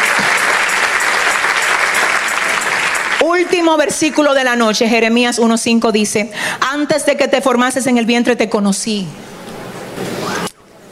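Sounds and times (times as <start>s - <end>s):
audience applause: 0.0s - 4.2s
speech: 3.4s - 9.4s.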